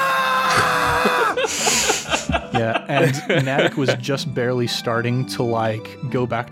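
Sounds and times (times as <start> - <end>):
loud human scream: 0.0 - 1.5
speech: 2.6 - 6.5.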